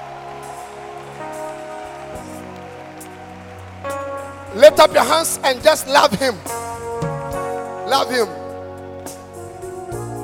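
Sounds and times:
audience clapping hands: 0.0s - 6.9s
speech: 4.5s - 6.6s, 7.9s - 8.4s.

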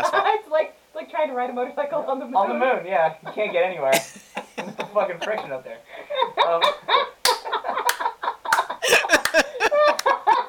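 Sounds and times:
lively voices and laughter: 0.0s - 0.6s, 3.0s - 10.4s
speech: 0.0s - 4.2s, 5.0s - 7.1s
quick percussive snaps: 6.6s - 10.2s
sharp loud hand clap: 6.6s - 10.2s.

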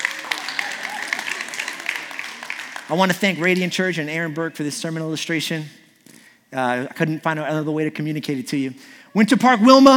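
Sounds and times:
audience applause welcoming a speaker to the stage: 0.0s - 3.5s
speech: 2.9s - 5.8s, 6.5s - 9.9s.

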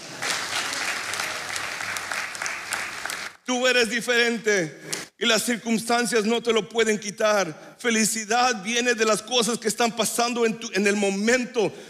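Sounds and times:
audience applause: 0.0s - 3.4s
speech: 3.5s - 11.8s.

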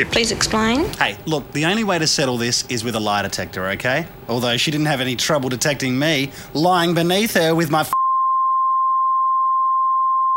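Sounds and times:
speech: 0.0s - 8.0s
censor beep tone: 7.9s - 10.3s.

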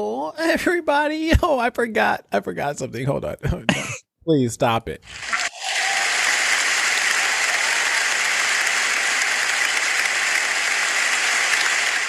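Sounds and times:
speech: 0.0s - 5.3s
crowd applauding: 5.1s - 12.0s.

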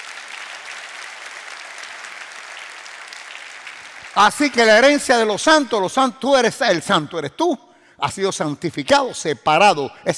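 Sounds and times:
audience applause: 0.0s - 4.3s
speech: 4.2s - 10.1s.

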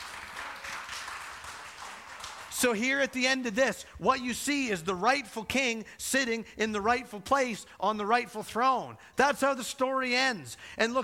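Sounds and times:
audience clapping: 0.0s - 3.2s
speech: 2.6s - 11.0s.

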